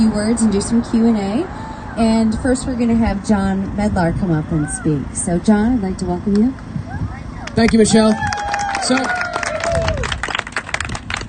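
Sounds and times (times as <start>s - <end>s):
speech: 0.2s - 9.2s
audience clapping: 7.4s - 11.2s.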